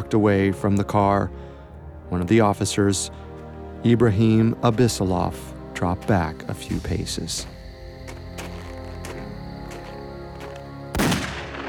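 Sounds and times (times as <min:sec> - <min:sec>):
speech: 0:00.1 - 0:01.5, 0:02.1 - 0:07.6
single gunshot: 0:11.0 - 0:11.6.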